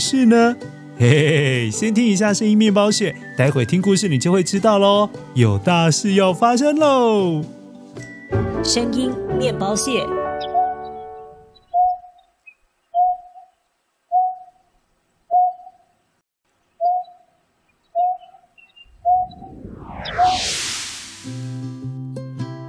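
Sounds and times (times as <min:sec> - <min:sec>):
speech: 0:00.1 - 0:07.6, 0:08.3 - 0:10.2
laughter: 0:01.0 - 0:02.0
bird call: 0:11.6 - 0:12.2, 0:13.0 - 0:13.5, 0:14.1 - 0:14.6, 0:15.3 - 0:15.8, 0:16.8 - 0:17.3, 0:18.0 - 0:19.3.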